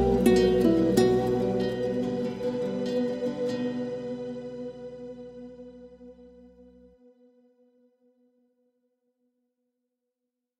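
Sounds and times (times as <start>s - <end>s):
guitar: 0.0s - 6.8s.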